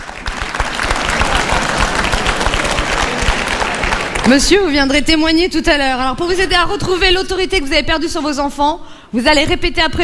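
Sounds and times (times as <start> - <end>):
audience clapping: 0.0 - 5.0
speech: 4.2 - 10.0.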